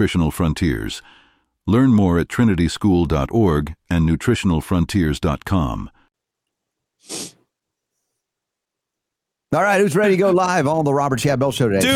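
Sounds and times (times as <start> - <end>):
speech: 0.0 - 6.0, 9.5 - 11.9
person sneezing: 7.0 - 7.4.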